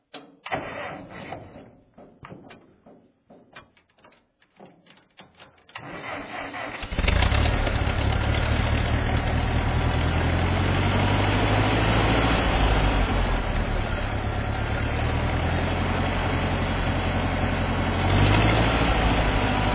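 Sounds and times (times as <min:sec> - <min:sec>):
Farmall tractor: 0:00.4 - 0:01.6, 0:05.7 - 0:19.7.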